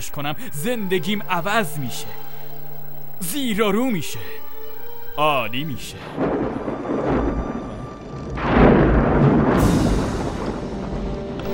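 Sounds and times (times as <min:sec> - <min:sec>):
speech: 0:00.0 - 0:02.3, 0:03.2 - 0:04.5, 0:05.2 - 0:06.7
storm: 0:06.0 - 0:11.4.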